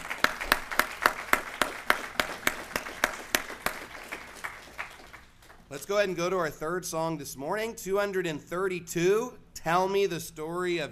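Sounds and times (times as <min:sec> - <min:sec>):
round of applause: 0:00.0 - 0:05.7
speech: 0:05.7 - 0:10.8.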